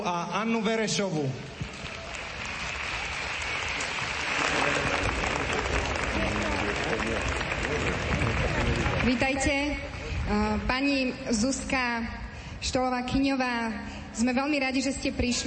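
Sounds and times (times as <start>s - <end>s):
speech: 0.0s - 1.6s, 6.8s - 15.4s
audience applause: 1.5s - 10.1s.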